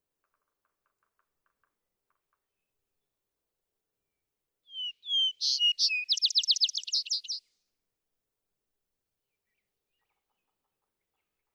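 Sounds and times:
vesper sparrow song: 4.7s - 7.5s.

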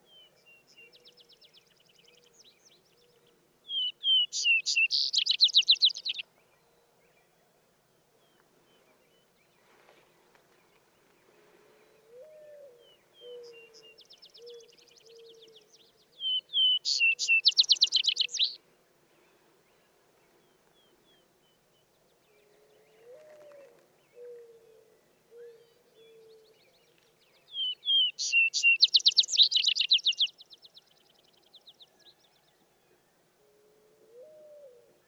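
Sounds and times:
Vesper Sparrow song: 3.8s - 6.2s, 16.2s - 18.6s, 27.6s - 30.6s.

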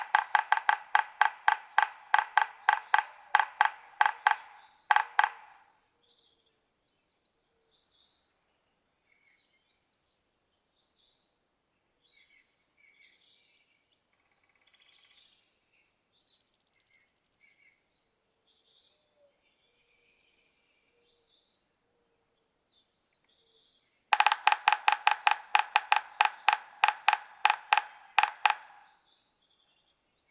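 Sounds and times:
yellow-bellied sapsucker nasal mewing notes: 0.0s - 5.7s, 24.2s - 28.9s.

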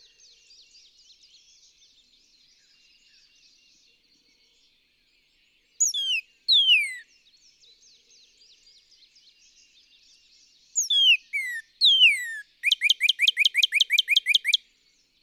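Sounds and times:
Northern cardinal song: 5.8s - 7.1s, 10.8s - 14.6s.

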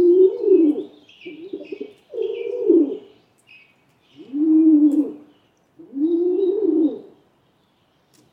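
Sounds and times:
rock pigeon cooing: 0.0s - 3.1s, 4.2s - 7.2s
high chirping from other birds: 0.7s - 4.4s.

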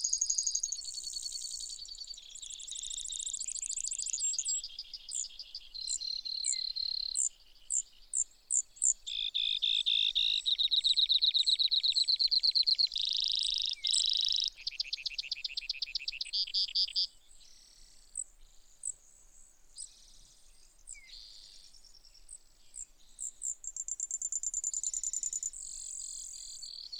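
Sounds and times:
Brewer's sparrow song with buzzy trills: 0.0s - 26.9s.

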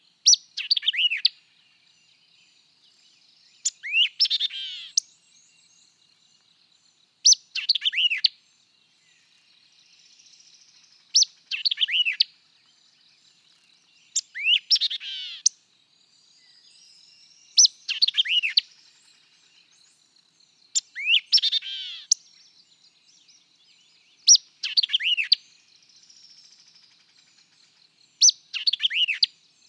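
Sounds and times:
white-eyed vireo song of sharp chips and slurred whistles: 0.2s - 1.3s, 3.6s - 5.1s, 7.2s - 8.3s, 11.1s - 12.3s, 14.0s - 15.5s, 16.4s - 18.7s, 20.7s - 22.3s, 24.2s - 25.5s, 28.2s - 29.6s.

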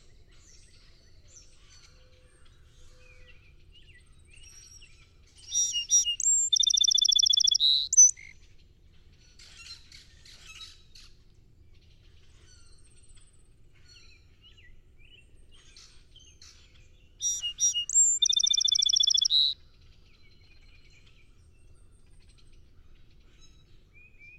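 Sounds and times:
song sparrow singing with trill: 3.2s - 8.4s, 17.1s - 19.6s
faint high chattering: 17.6s - 19.5s.

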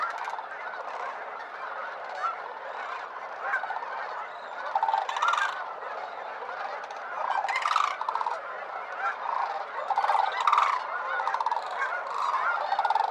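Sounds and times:
sandhill cranes giving rolling rattling calls: 0.0s - 5.8s, 6.4s - 13.1s.

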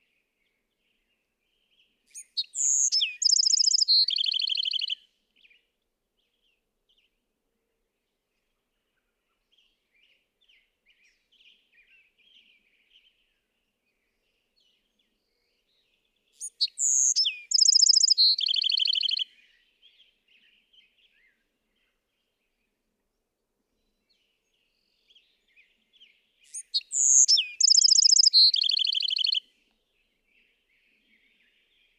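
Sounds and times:
Bewick's wren singing: 2.2s - 5.0s, 16.4s - 19.2s, 26.5s - 29.4s.

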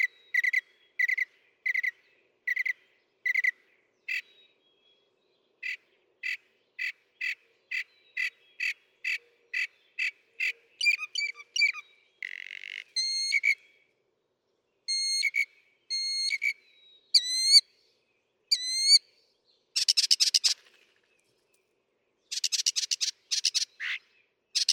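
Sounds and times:
northern mockingbird singing: 0.0s - 4.6s, 5.6s - 13.8s, 14.9s - 17.7s, 18.5s - 19.0s, 19.8s - 21.0s, 22.3s - 24.7s.

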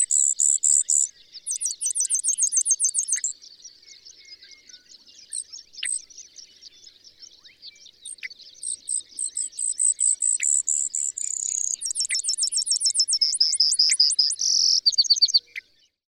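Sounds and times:
Brewer's Sparrow: 0.0s - 16.0s.

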